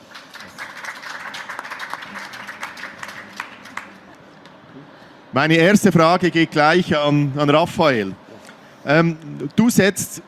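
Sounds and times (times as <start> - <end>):
audience applause: 0.0 - 4.2
speech: 5.3 - 8.2, 8.8 - 10.2.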